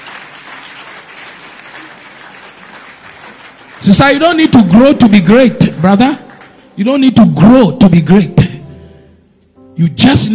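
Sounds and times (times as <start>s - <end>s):
audience clapping hands: 0.0s - 7.1s
speech: 3.8s - 6.2s, 6.8s - 8.4s, 9.8s - 10.3s.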